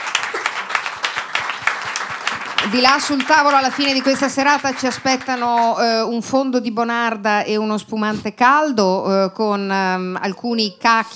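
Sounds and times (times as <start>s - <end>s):
audience applause at a live evening show: 0.0s - 5.8s
speech: 2.6s - 11.1s.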